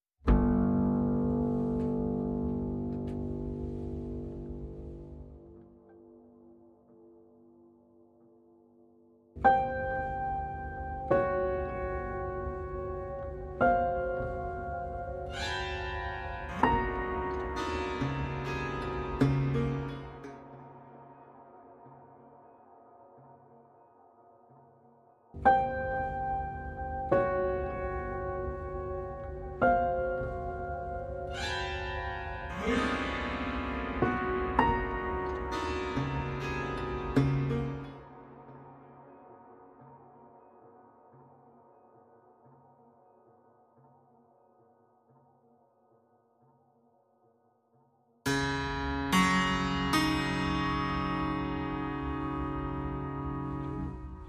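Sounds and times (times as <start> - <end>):
picked piano: 0.3 - 6.1, 9.4 - 21.1, 25.4 - 39.6, 48.3 - 54.2.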